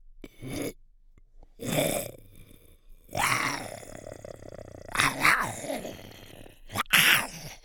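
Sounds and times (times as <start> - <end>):
monster growling: 1.6 - 7.6.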